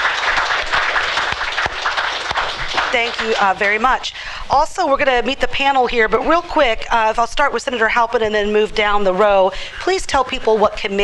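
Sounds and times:
crowd applauding: 0:00.0 - 0:04.0
speech: 0:03.0 - 0:11.0.

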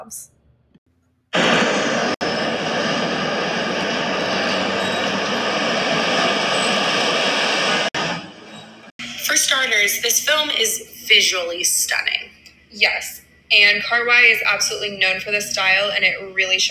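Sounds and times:
speech: 0:00.0 - 0:00.4, 0:09.4 - 0:16.6
train running along tracks: 0:01.4 - 0:09.5
high-pitched metallic squeal: 0:04.2 - 0:05.4.

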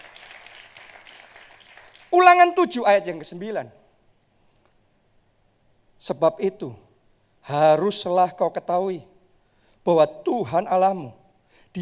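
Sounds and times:
audience applause: 0:00.0 - 0:02.4
speech: 0:02.2 - 0:03.8, 0:06.1 - 0:06.8, 0:07.4 - 0:09.1, 0:09.8 - 0:11.8.

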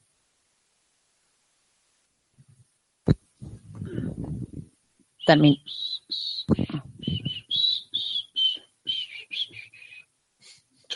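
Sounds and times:
speech: 0:05.3 - 0:05.9
man whistling softly while leaving: 0:05.6 - 0:10.0.

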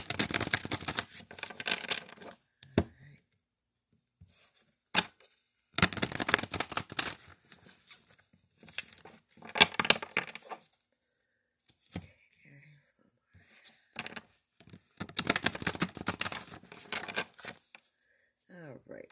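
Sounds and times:
shuffling tarot cards: 0:00.0 - 0:02.4, 0:05.8 - 0:10.6, 0:14.0 - 0:17.8.

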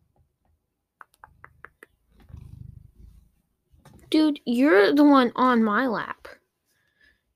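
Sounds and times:
cat rumbling purr-like growl: 0:01.2 - 0:04.1
speech: 0:04.1 - 0:06.4.

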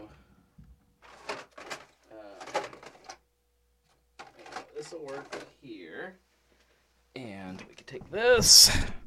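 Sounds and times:
drawers being rooted through in a search for a capture card: 0:01.0 - 0:03.2, 0:04.2 - 0:05.5
speech: 0:04.9 - 0:06.3, 0:07.2 - 0:09.0.

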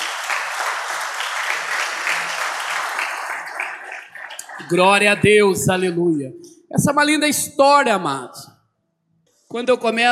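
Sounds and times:
audience applauding: 0:00.0 - 0:05.2
speech: 0:04.6 - 0:08.5, 0:09.5 - 0:10.1.

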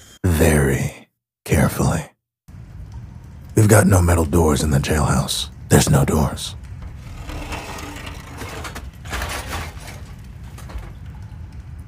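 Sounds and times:
speech: 0:01.7 - 0:02.1, 0:03.6 - 0:06.6
rusty broken-down oven creaking and grinding: 0:06.6 - 0:11.8.

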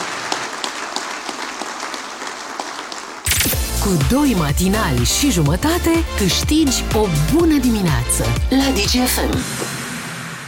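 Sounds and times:
audience applause: 0:00.0 - 0:03.3
loud music: 0:03.3 - 0:10.4
speech: 0:03.9 - 0:09.6.

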